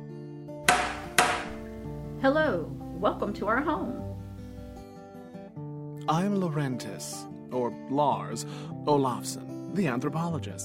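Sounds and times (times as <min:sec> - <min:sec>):
metallic door knocker knocking on door: 0:00.7 - 0:01.7
speech: 0:02.2 - 0:04.1, 0:06.1 - 0:10.6.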